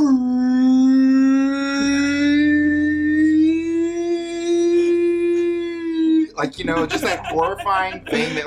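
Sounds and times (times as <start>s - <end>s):
voice imitating a tornado siren: 0.6s - 5.8s
speech: 6.4s - 8.4s
laughter: 6.5s - 8.4s.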